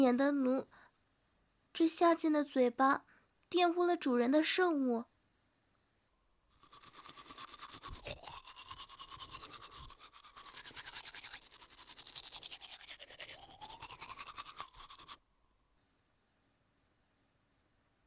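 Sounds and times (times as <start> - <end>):
speech: 0.0 - 0.8, 1.8 - 5.1
rinsing mouth in the bathroom: 6.5 - 15.2.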